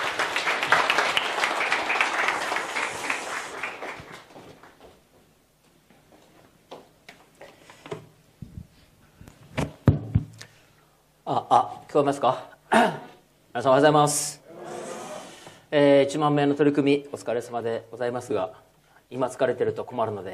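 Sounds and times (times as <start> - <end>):
crowd applauding welcoming speaker to stage: 0.0 - 4.8
speech: 11.5 - 13.0, 13.6 - 14.4, 15.7 - 20.3.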